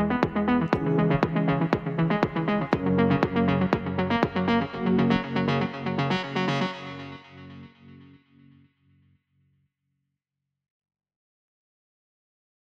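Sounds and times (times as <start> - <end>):
soul music: 0.0 - 8.2.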